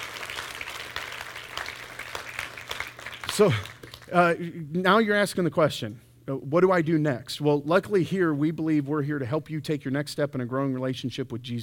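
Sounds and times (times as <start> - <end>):
church congregation applauding: 0.0 - 4.1
speech: 3.4 - 11.6.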